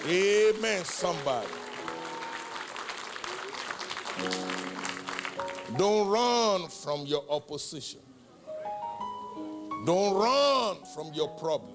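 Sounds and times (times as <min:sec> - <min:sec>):
speech: 0:00.0 - 0:01.6, 0:04.2 - 0:04.8, 0:05.7 - 0:08.2, 0:09.8 - 0:11.7
audience clapping: 0:00.0 - 0:06.1.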